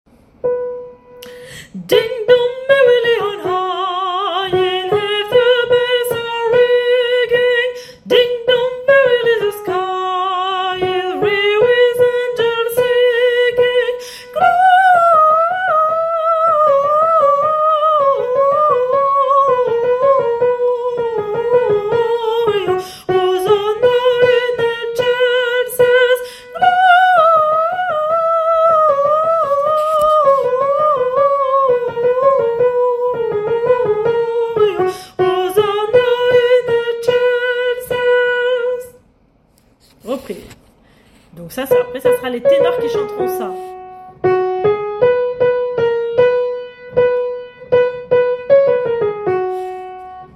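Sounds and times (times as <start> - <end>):
soprano part: 0.3 - 39.0, 41.6 - 50.3.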